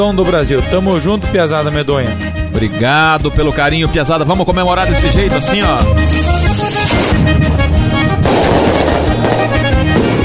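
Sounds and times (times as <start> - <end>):
speech: 0.0 - 7.1
fireworks rockets exploding: 6.0 - 10.2.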